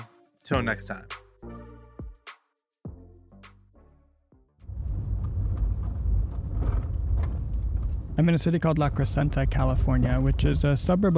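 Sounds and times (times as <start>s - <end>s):
speech: 0.5s - 1.6s, 8.2s - 11.1s
road and engine rumble inside a black Chevy SUV on Foothill Boulevard: 4.6s - 11.1s.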